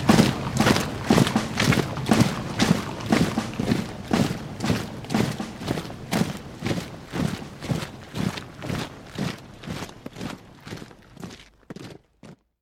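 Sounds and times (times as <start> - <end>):
march music: 0.0 - 10.0.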